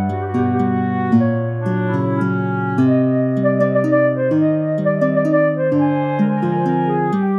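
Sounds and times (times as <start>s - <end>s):
orchestral music: 0.2s - 7.3s.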